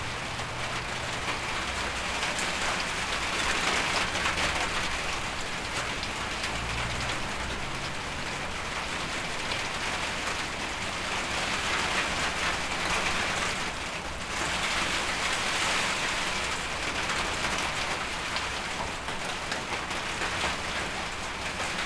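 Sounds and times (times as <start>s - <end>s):
rain on a carport: 0.0s - 21.8s.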